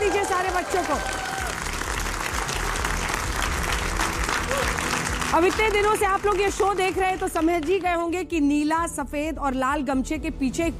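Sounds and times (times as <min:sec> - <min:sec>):
audience clapping: 0:00.0 - 0:08.2
speech: 0:00.6 - 0:01.4, 0:05.3 - 0:10.7.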